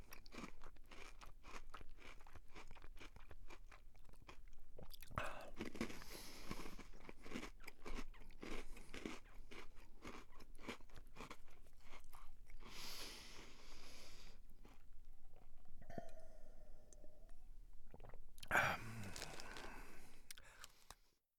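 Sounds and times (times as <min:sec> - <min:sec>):
eating biscuits: 0:00.0 - 0:15.7, 0:17.9 - 0:21.1
person drinking: 0:04.9 - 0:06.8, 0:12.5 - 0:21.0.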